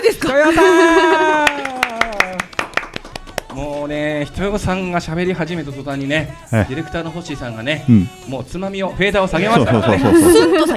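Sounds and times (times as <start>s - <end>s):
speech: 0.0s - 1.4s, 4.2s - 10.7s
laughter: 0.0s - 2.1s, 9.4s - 10.7s
sparse clapping: 1.4s - 3.8s.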